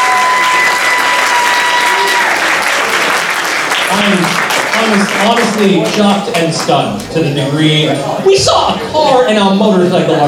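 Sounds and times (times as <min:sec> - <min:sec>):
crowd cheer: 0:00.0 - 0:05.9
audience applause at an awards ceremony: 0:00.0 - 0:06.8
speech: 0:03.9 - 0:10.2.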